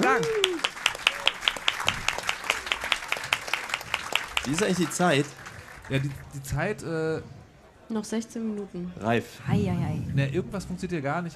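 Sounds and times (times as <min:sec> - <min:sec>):
audience applause: 0:00.0 - 0:06.5
speech: 0:00.1 - 0:00.4, 0:04.5 - 0:11.3.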